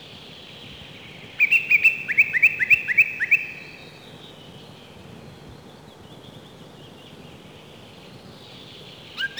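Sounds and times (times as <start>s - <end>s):
song thrush singing: 0.0s - 9.3s.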